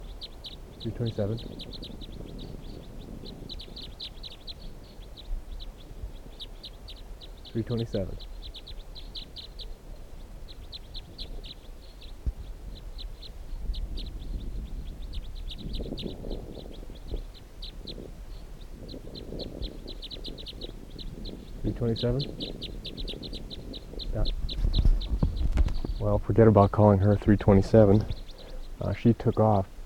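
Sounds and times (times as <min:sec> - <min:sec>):
bird calling with high thin chirps: 0:00.0 - 0:29.8
soft murmuring sounds: 0:00.0 - 0:29.8
speech: 0:00.8 - 0:02.2, 0:07.6 - 0:08.3, 0:21.9 - 0:22.7, 0:26.3 - 0:28.2, 0:28.8 - 0:29.7.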